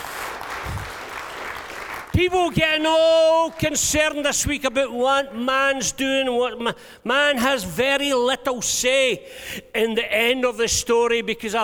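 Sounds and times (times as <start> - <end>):
audience clapping: 0.0 - 2.4
speech: 2.2 - 11.6.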